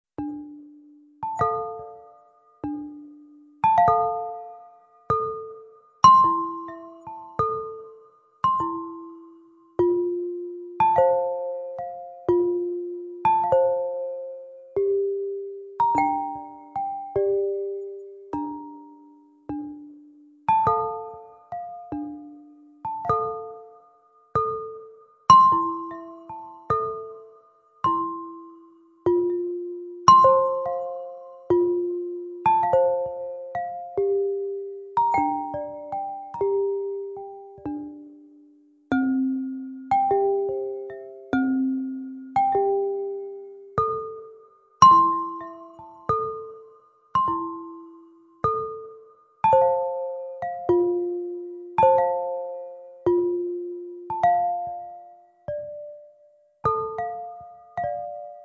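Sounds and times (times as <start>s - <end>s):
instrumental music: 0.1s - 58.4s.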